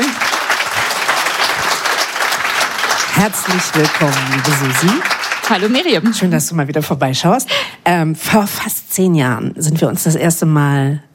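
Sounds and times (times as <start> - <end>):
stage audience applause at a Berlin bar-scene event: 0.0 - 6.5
speech: 3.2 - 11.1.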